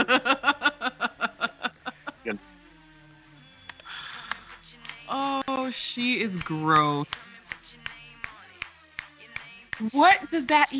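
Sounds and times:
laughter: 0:00.0 - 0:02.4, 0:03.9 - 0:07.5
speech: 0:00.1 - 0:00.3, 0:05.7 - 0:07.3, 0:09.8 - 0:10.7
hand claps: 0:03.7 - 0:10.7.

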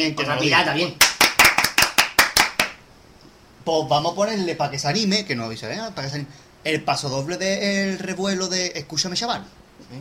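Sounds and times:
speech: 0:00.0 - 0:01.1, 0:03.7 - 0:10.0
applause: 0:01.0 - 0:02.8.

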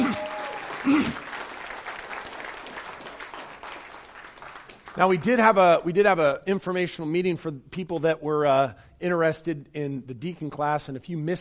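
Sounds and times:
audience applause: 0:00.0 - 0:05.0
speech: 0:00.8 - 0:01.3, 0:05.0 - 0:11.3.

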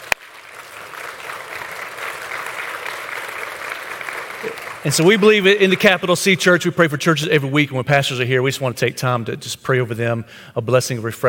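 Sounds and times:
audience applause: 0:00.0 - 0:06.2
speech: 0:04.4 - 0:11.2.

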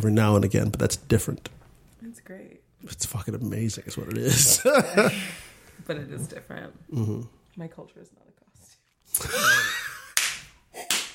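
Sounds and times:
speech: 0:00.0 - 0:09.6
laughter: 0:04.0 - 0:05.6, 0:09.2 - 0:10.2
hand clap: 0:10.0 - 0:11.1.

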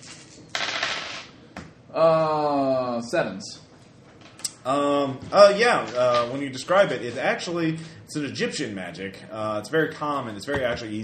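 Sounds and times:
dice clattering across a hard surface: 0:00.0 - 0:01.3
speech: 0:02.0 - 0:03.6, 0:04.6 - 0:11.0.

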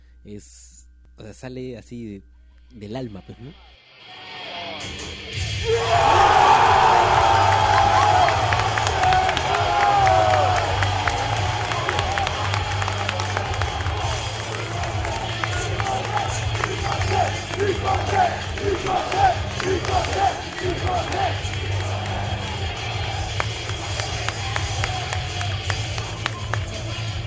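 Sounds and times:
speech: 0:00.2 - 0:06.2
wrestling arena crowd pop roaring cheer: 0:05.6 - 0:27.1.

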